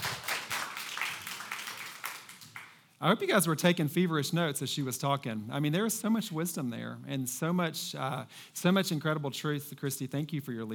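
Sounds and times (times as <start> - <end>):
audience applause: 0.0 - 2.8
speech: 3.0 - 10.7.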